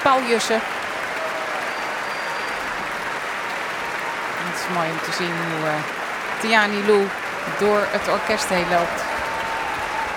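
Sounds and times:
large audience applause for orchestra timpanist: 0.0s - 10.1s
speech: 0.1s - 0.8s, 4.6s - 9.1s.

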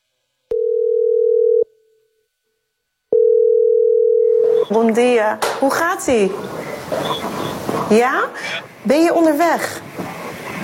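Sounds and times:
ringback tone of an outgoing telephone call: 0.5s - 1.7s, 3.1s - 4.7s
speech: 4.7s - 9.8s.

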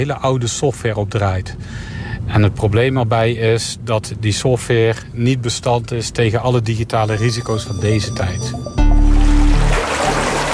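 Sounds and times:
speech: 0.0s - 8.7s
water pumped up by a pumping station heard from above a grate: 8.8s - 10.5s.

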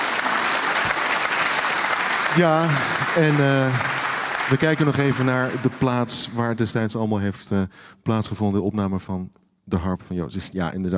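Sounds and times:
audience applause: 0.0s - 6.6s
speech: 2.4s - 10.9s.

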